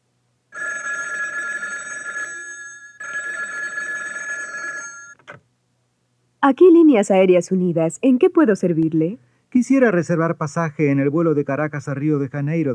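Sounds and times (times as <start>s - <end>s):
telephone ringing: 0.5s - 5.2s
speech: 6.4s - 12.7s.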